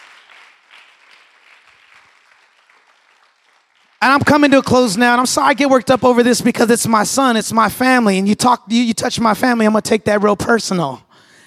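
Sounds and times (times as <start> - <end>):
audience clapping hands: 0.0 - 5.8
speech: 4.0 - 11.0.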